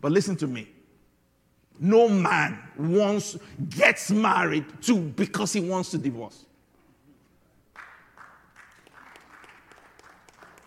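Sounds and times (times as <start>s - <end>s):
speech: 0.0s - 0.8s, 1.8s - 6.5s
audience clapping: 7.7s - 10.6s.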